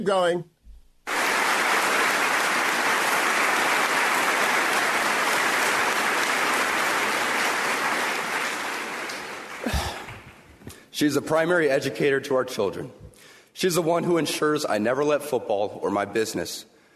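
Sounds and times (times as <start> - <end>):
speech: 0.0 - 0.5, 11.0 - 16.7
audience cheering: 1.1 - 10.3
applause: 1.1 - 10.6.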